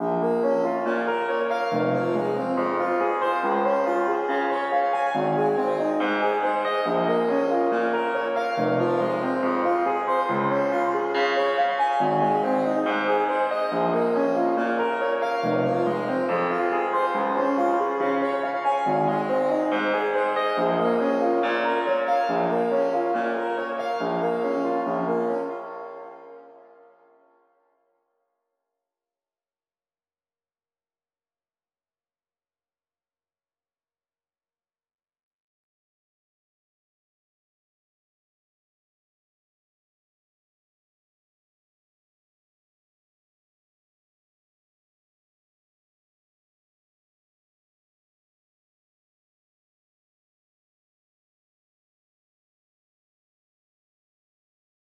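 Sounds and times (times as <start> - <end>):
wet arpeggio at 140 BPM: 0.0 - 27.0.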